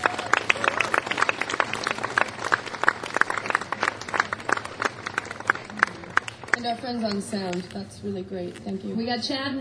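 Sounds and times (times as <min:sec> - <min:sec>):
audience applause at the Connecticut Folk Festival: 0:00.0 - 0:07.7
speech: 0:06.6 - 0:09.5.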